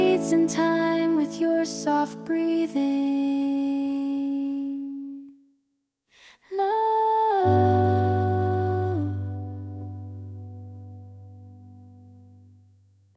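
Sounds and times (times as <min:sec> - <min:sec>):
lullaby singing: 0:00.0 - 0:05.2, 0:06.5 - 0:09.7.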